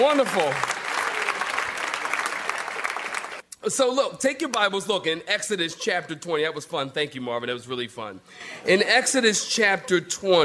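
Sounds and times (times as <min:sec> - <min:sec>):
speech: 0:00.0 - 0:00.8, 0:03.6 - 0:10.4
audience clapping hands: 0:00.0 - 0:03.4.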